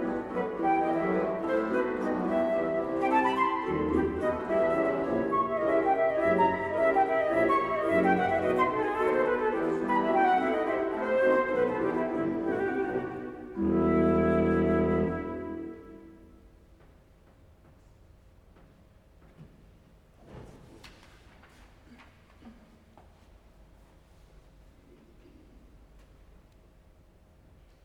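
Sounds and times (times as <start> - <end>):
flute and organ sonata in E minor, Allegro: 0.0 - 16.3.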